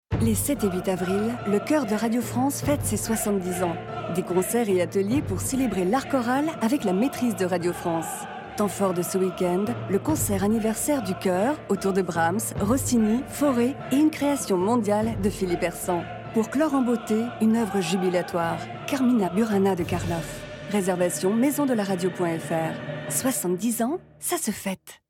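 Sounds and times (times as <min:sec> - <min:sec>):
choir singing: 0:00.2 - 0:24.2.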